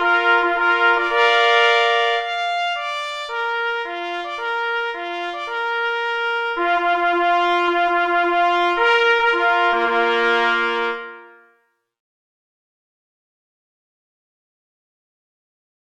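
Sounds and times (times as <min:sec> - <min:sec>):
fanfare: 0:00.0 - 0:11.7.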